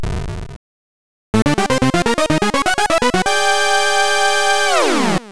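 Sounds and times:
mini-boss intro game music: 1.4 - 5.1.

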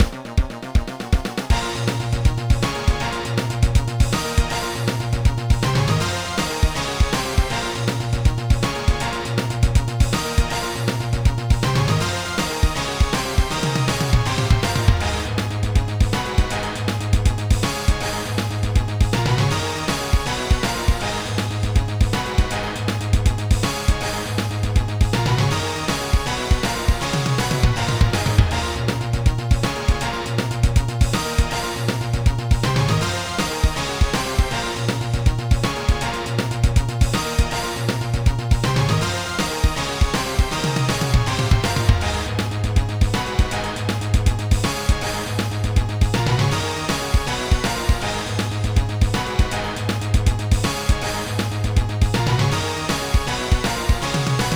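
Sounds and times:
battle music: 0.0 - 54.5.

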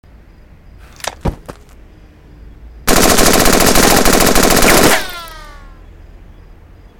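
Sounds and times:
assault rifle: 2.9 - 5.3.

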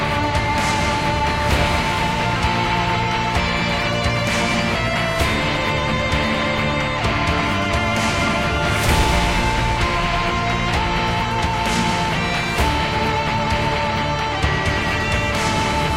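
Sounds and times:
fight music: 0.0 - 15.9.

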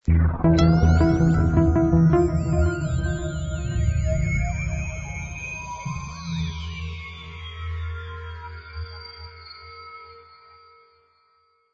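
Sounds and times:
theme music: 0.1 - 5.8.

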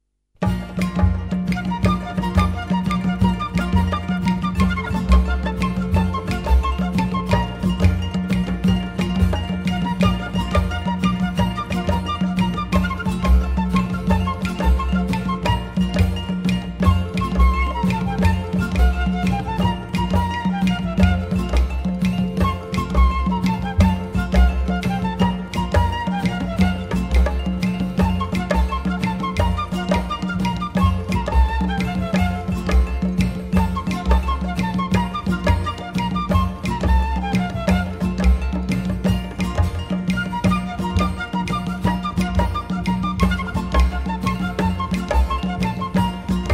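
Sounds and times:
guaracha music: 0.4 - 46.5.

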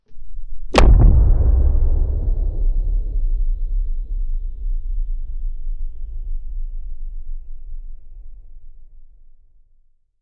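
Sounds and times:
huge explosion blast: 0.7 - 8.6.

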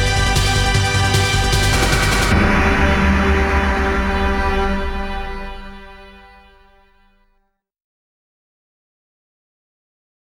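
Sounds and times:
ending background music: 0.0 - 6.8.

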